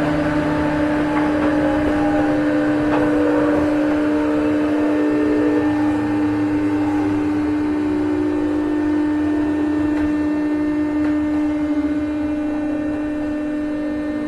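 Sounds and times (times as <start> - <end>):
Chuo Rapid 201 train: 0.0 - 14.2.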